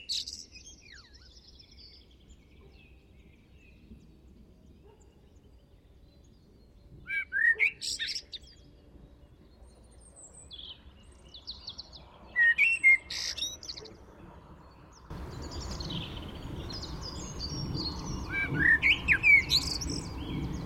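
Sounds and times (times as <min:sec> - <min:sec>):
common blackbird singing: 0:00.0 - 0:20.6
steady rushing noise: 0:15.1 - 0:20.6.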